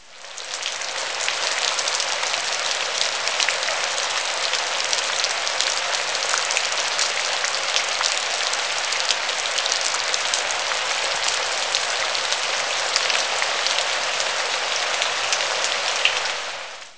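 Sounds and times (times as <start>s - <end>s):
rain: 0.0s - 16.9s.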